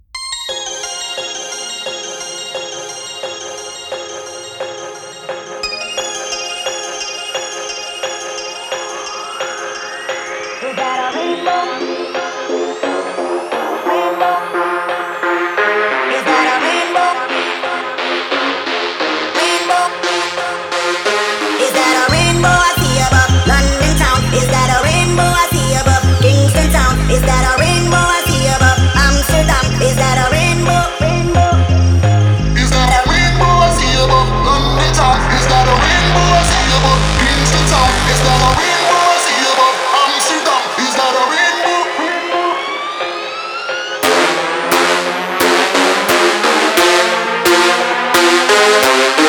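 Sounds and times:
jump-up drum and bass music: 10.6s - 49.2s.

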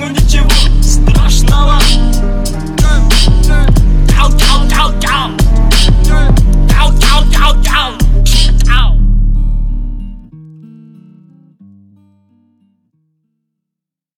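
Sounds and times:
36-38Hz low bass tone: 0.2s - 10.3s.

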